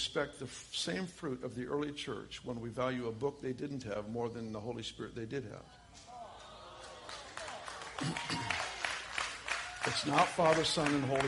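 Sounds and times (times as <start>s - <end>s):
speech: 0.0s - 6.1s, 8.0s - 8.5s, 9.9s - 11.2s
people clapping: 6.0s - 11.2s.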